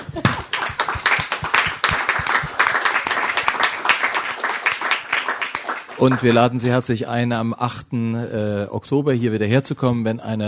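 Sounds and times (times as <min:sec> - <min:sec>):
audience applause: 0:00.0 - 0:06.5
speech: 0:06.0 - 0:10.4.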